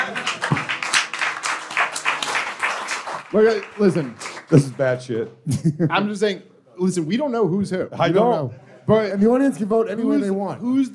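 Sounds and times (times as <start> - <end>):
people clapping: 0.0 - 5.2
speech: 3.3 - 10.9.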